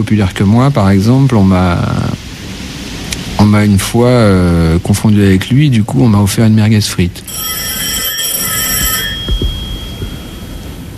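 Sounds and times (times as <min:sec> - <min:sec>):
speech: 0:00.0 - 0:02.2, 0:03.4 - 0:07.8
telephone ringing with electronic tones: 0:07.3 - 0:10.9.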